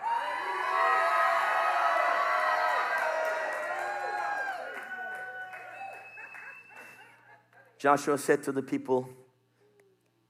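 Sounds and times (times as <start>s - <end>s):
large crowd shouting and cheering: 0.0s - 6.4s
laughter: 5.8s - 7.8s
speech: 7.8s - 9.2s.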